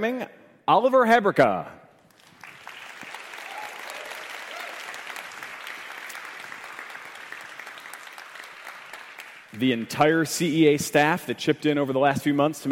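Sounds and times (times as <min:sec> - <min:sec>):
speech: 0:00.0 - 0:01.8, 0:09.6 - 0:12.7
crowd applause: 0:02.1 - 0:09.6.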